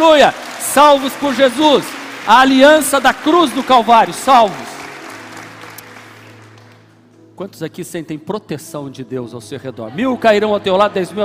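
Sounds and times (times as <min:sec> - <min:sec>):
speech: 0:00.0 - 0:04.7, 0:07.4 - 0:11.2
audience applauding: 0:00.0 - 0:07.0.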